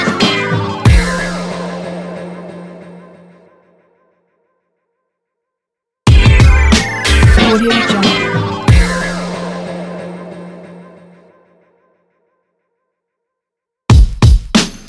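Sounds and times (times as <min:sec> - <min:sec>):
laid back hip hop logo: 0:00.0 - 0:02.7, 0:06.1 - 0:10.7.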